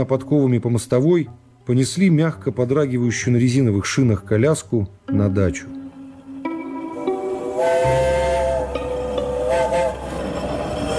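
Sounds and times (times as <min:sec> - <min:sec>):
speech: 0:00.0 - 0:05.8
steam train whistle at a railway station: 0:06.9 - 0:10.9
low rumbling steam train engine: 0:07.1 - 0:10.9.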